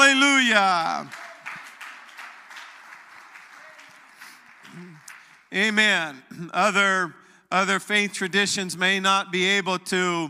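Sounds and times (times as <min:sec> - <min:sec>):
audience clapping: 0:00.0 - 0:05.8
speech: 0:00.5 - 0:01.2, 0:05.5 - 0:10.2.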